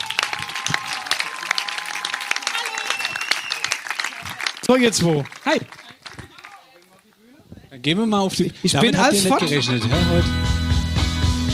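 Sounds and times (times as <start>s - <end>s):
audience clapping: 0.0s - 7.2s
speech: 4.7s - 5.8s, 7.8s - 10.5s
laughter: 8.7s - 10.4s.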